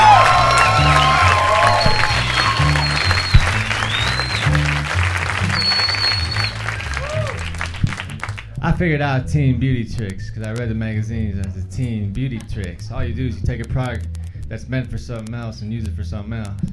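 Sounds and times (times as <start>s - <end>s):
audience whistles and whoops: 0.0s - 4.8s, 5.4s - 7.5s
audience applause at a stand-up comedy show: 0.0s - 8.5s
speech: 8.8s - 16.7s.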